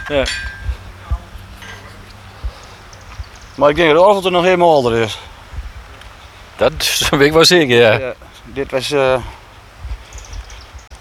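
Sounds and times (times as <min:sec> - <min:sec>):
blacksmith hammering metal: 0:00.0 - 0:02.1
low steady hum: 0:00.0 - 0:11.0
speech: 0:00.1 - 0:00.5, 0:03.6 - 0:05.3, 0:06.6 - 0:09.4.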